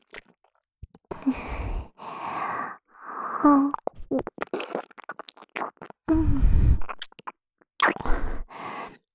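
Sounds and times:
person making mouth sounds in the left ear, ASMR: 0:03.5 - 0:08.5.

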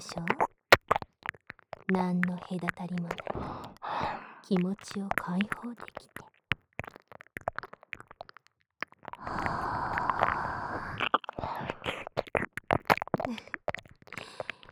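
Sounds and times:
speech: 0:00.0 - 0:00.4, 0:01.9 - 0:06.2
soft irregular wet clicks and mouth noises: 0:00.0 - 0:14.7
long warm breath exhaled into the ear: 0:09.2 - 0:11.0.

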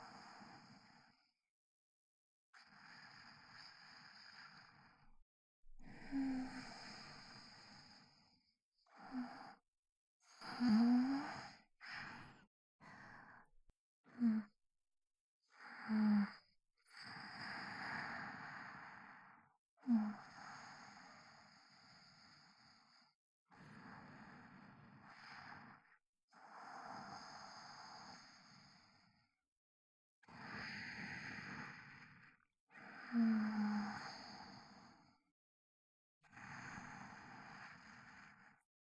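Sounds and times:
sleep breathing recorded with binaural microphone: 0:02.6 - 0:09.6, 0:10.4 - 0:13.4, 0:15.6 - 0:23.0, 0:23.6 - 0:29.2, 0:30.4 - 0:35.1, 0:36.2 - 0:38.6.

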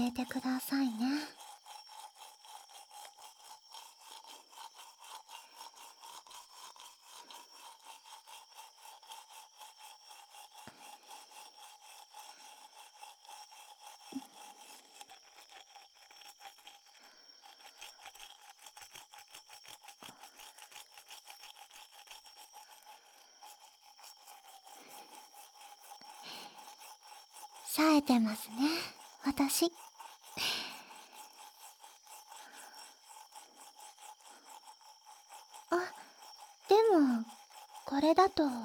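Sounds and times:
speech: 0:00.0 - 0:01.4, 0:27.8 - 0:29.8, 0:38.0 - 0:38.6
polishing with back-and-forth rubbing strokes: 0:00.0 - 0:38.6.

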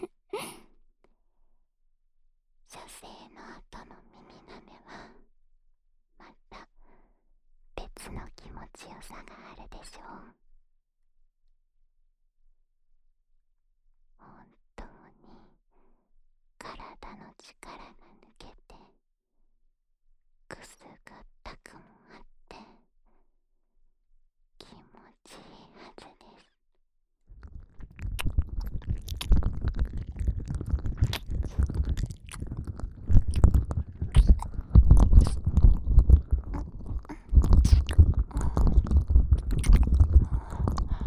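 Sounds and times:
ear licking in the left ear: 0:27.4 - 0:41.0.

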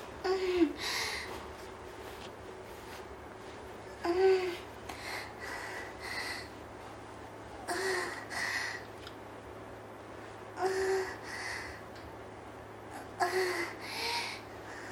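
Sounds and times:
woman's erotic masturbation voice ASMR: 0:00.2 - 0:01.3, 0:03.9 - 0:06.5, 0:07.6 - 0:08.8, 0:10.6 - 0:11.7, 0:13.0 - 0:14.4.

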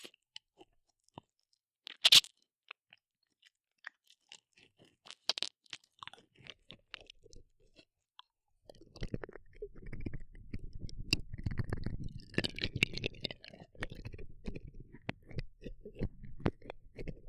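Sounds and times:
ASMR ear licking sounds: 0:01.9 - 0:02.3, 0:08.7 - 0:17.2.

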